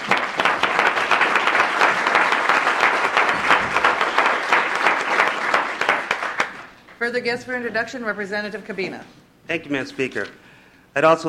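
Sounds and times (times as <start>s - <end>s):
audience in a legislative session clapping to welcome introduced guests: 0.0s - 7.0s
speech: 7.0s - 11.2s.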